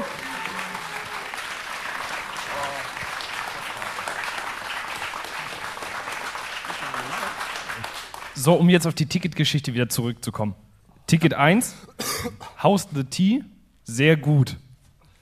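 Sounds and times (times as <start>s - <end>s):
audience applause in a cinema: 0.0s - 8.5s
speech: 8.4s - 14.6s.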